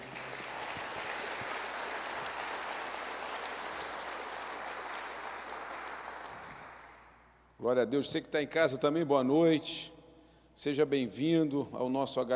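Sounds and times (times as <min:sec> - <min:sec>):
crowd applauding: 0:00.0 - 0:07.2
speech: 0:07.6 - 0:09.9, 0:10.6 - 0:12.3.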